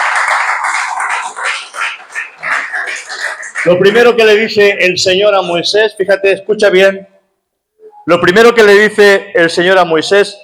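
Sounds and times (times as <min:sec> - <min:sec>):
audience applause: 0:00.0 - 0:04.2
speech: 0:03.6 - 0:07.1, 0:08.0 - 0:10.4.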